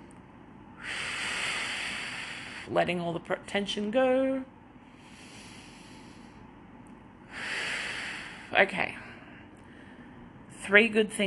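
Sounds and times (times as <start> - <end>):
deep breath taken during a calming exercise: 0.8 - 2.7, 4.8 - 6.5, 7.2 - 10.4
speech: 2.7 - 4.6, 8.5 - 9.0, 10.7 - 11.2.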